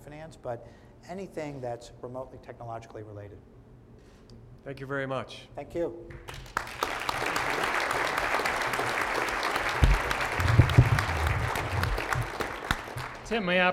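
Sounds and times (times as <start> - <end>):
speech: 0.2 - 3.6, 4.3 - 6.4, 13.3 - 13.7
audience applause after a speech: 6.3 - 13.7.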